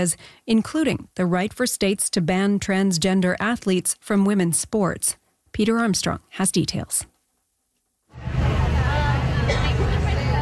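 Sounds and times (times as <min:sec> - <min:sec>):
speech: 0:00.0 - 0:07.1
crowd outside Supreme Court building in Washington: 0:08.1 - 0:10.3
traffic outside Supreme Court building: 0:08.2 - 0:10.3.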